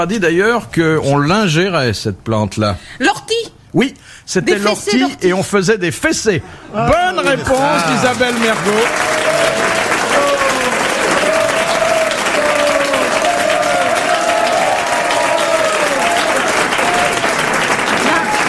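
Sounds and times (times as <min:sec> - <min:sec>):
speech: 0:00.0 - 0:09.5
audience applause: 0:07.2 - 0:18.4
faint voices and cheers: 0:07.9 - 0:18.4.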